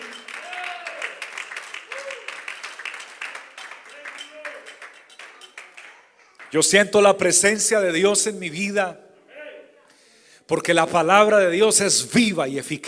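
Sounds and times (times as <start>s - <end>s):
audience applauding: 0.0s - 6.6s
speech: 6.5s - 9.0s, 10.5s - 12.8s.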